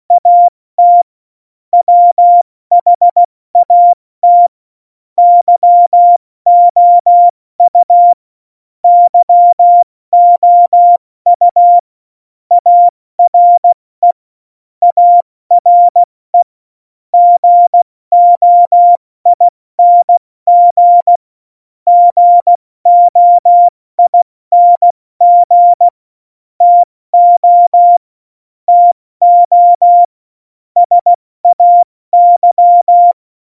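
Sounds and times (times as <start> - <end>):
CW Morse code at tempo 70: 0.2 - 1.0, 1.8 - 4.5, 5.2 - 8.2, 8.9 - 11.8, 12.5 - 14.2, 14.8 - 16.1, 17.2 - 21.2, 21.9 - 25.9, 26.6 - 28.0, 28.7 - 30.1, 30.8 - 33.2.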